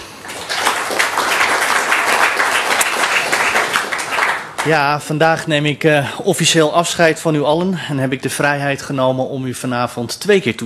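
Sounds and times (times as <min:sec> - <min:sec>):
audience applause: 0:00.0 - 0:04.9
speech: 0:04.6 - 0:10.6.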